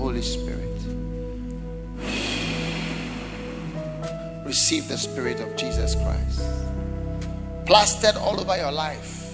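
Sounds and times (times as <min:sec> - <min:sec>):
speech: 0:00.2 - 0:01.0, 0:04.5 - 0:06.9, 0:07.7 - 0:09.2
soft tonal drone: 0:01.9 - 0:04.9
person inhaling deeply during a prayer: 0:02.0 - 0:04.5.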